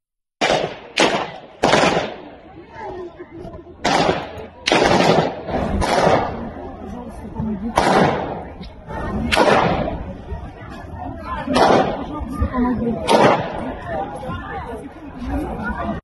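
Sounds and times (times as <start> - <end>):
gunfire from terrorists shooting inside a music hall: 0.4 - 2.4, 3.8 - 6.5, 7.7 - 8.5, 9.3 - 10.0, 11.5 - 12.1, 13.0 - 13.7
voices and chatter: 0.5 - 16.0.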